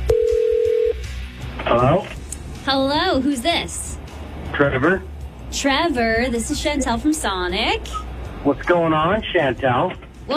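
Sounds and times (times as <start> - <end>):
telephone tone as a call is placed on a radio show: 0.0 - 1.0
speech: 2.8 - 3.8, 4.5 - 10.3.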